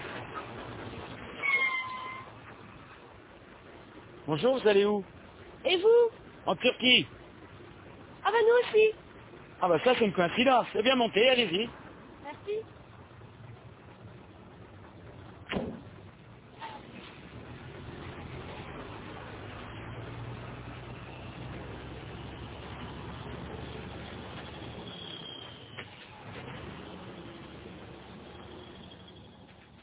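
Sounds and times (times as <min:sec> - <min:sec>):
truck engine drone and road noise: 0:00.0 - 0:09.7, 0:11.1 - 0:29.8
speech: 0:04.3 - 0:07.2, 0:08.3 - 0:09.0, 0:09.6 - 0:11.8
sharp knocks: 0:15.4 - 0:15.9.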